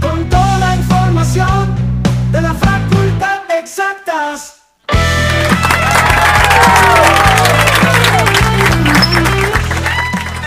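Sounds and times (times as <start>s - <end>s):
loud music track with a thumping bass line: 0.0s - 3.2s, 4.9s - 10.4s
audience applauding: 5.0s - 10.4s
voices cheering and shouting: 5.7s - 8.5s.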